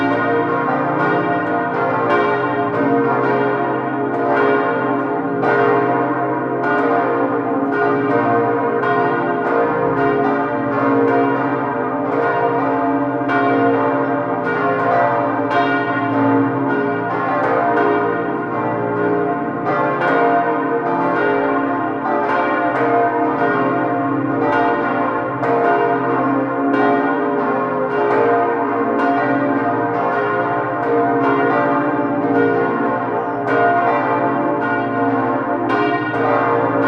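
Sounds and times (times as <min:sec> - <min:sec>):
church bells of the Dankeskirche in Bad Nauheim: 0:00.0 - 0:36.8.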